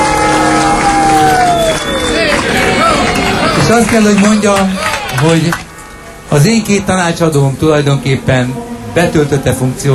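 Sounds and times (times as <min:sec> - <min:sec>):
audience applause: 0:00.0 - 0:05.7
speech: 0:03.7 - 0:05.7, 0:06.3 - 0:09.9.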